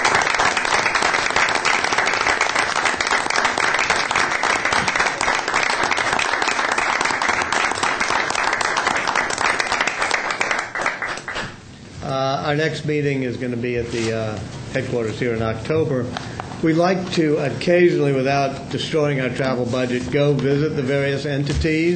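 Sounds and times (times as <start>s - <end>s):
crowd round of applause: 0.0s - 11.6s
speech: 12.6s - 21.9s.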